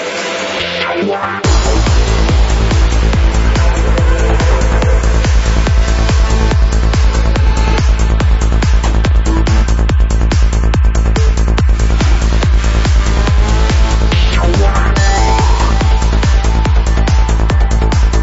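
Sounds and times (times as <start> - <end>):
psychedelic progressive trance music with drums: 0.0 - 18.2.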